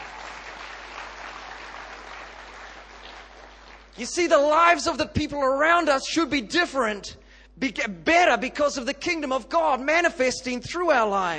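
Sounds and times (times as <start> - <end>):
audience clapping: 0.0 - 4.0
speech: 4.0 - 11.3.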